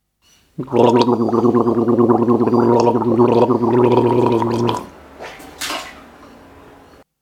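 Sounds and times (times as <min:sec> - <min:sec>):
person gargling: 0:00.6 - 0:04.9.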